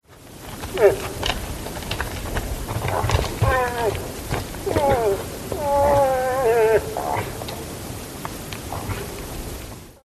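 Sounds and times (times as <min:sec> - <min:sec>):
moose: 0:00.6 - 0:01.4, 0:02.8 - 0:07.9, 0:08.6 - 0:09.3.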